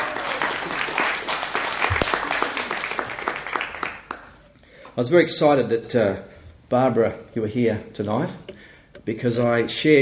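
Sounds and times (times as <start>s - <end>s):
audience clapping: 0.0s - 4.5s
speech: 5.0s - 10.0s.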